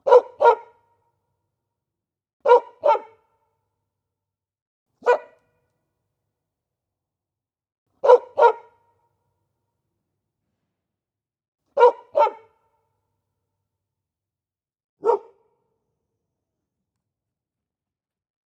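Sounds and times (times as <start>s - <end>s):
dog barking: 0.0s - 0.8s, 2.4s - 3.2s, 5.0s - 5.4s, 8.0s - 8.8s, 11.8s - 12.6s, 15.0s - 15.5s.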